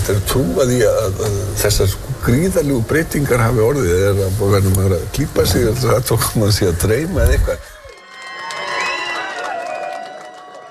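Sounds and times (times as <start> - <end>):
speech: 0.1 - 7.7
crowd cheering and shouting at an election night party at Glerártorg: 7.8 - 10.6.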